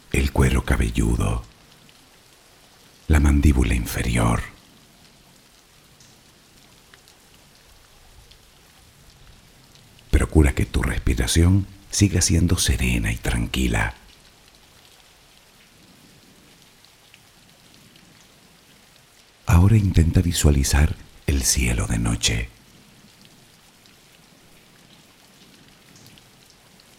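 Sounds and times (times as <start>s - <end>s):
soft steady rain: 0.0s - 26.9s
speech: 0.4s - 1.5s, 3.1s - 4.5s, 10.4s - 14.0s, 19.6s - 22.6s.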